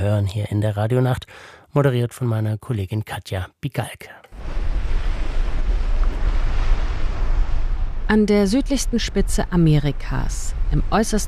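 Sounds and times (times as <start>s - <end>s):
speech: 0.0s - 4.6s, 8.1s - 11.2s
surf crashing on the Atlantic shore: 4.4s - 9.1s
strong wind buffeting the microphone: 4.4s - 11.2s.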